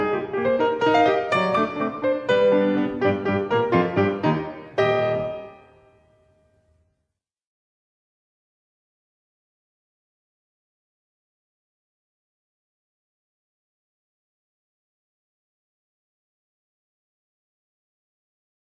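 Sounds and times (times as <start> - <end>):
ballet music: 0.0 - 6.4.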